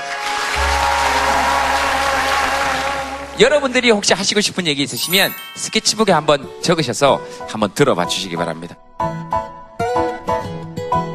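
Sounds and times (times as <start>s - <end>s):
audience applause: 0.0s - 3.7s
speech: 3.4s - 9.2s.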